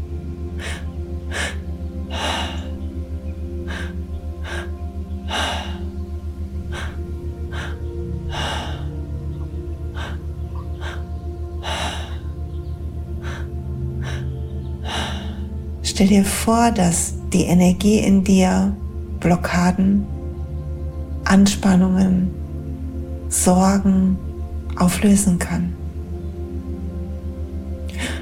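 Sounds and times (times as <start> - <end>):
slow breaths during a guided breathing meditation: 0.0 - 15.8, 27.9 - 28.2
sustained tonal drone: 0.0 - 28.2
speech: 16.0 - 20.1, 21.3 - 22.4, 23.3 - 24.2, 24.8 - 25.8.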